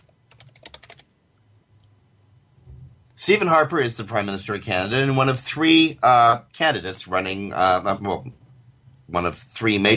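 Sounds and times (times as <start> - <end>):
computer keyboard tapping as a Google search is typed: 0.0 - 1.2
speech: 3.2 - 8.4, 9.1 - 9.9.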